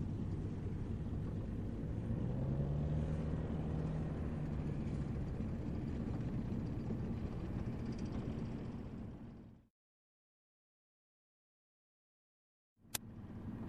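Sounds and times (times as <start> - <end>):
tank driving past: 0.0 - 9.5.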